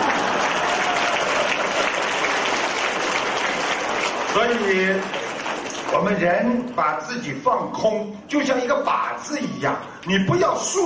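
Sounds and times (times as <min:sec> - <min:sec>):
audience applause: 0:00.0 - 0:06.2
speech: 0:04.4 - 0:05.2, 0:05.9 - 0:10.8.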